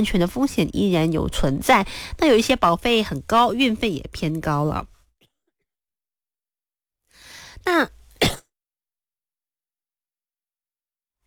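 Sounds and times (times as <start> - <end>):
speech: 0.0 - 4.9, 7.6 - 8.0
person coughing: 8.2 - 8.4.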